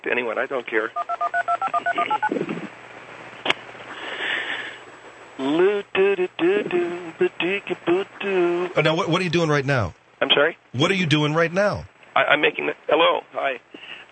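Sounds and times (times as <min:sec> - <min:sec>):
speech: 0:00.0 - 0:02.4, 0:05.4 - 0:13.6
touch-tone dialing beeps: 0:01.0 - 0:02.4
voice talking over a phone line: 0:08.8 - 0:09.9, 0:10.8 - 0:11.9.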